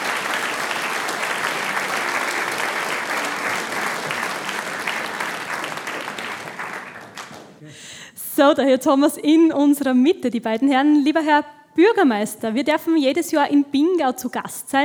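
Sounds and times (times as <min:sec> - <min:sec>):
audience applause: 0:00.0 - 0:07.7
speech: 0:08.4 - 0:14.8.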